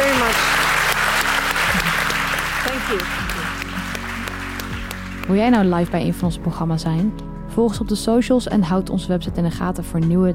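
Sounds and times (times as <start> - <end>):
audience applause: 0.0 - 5.5
speech: 2.9 - 3.3, 5.3 - 10.3.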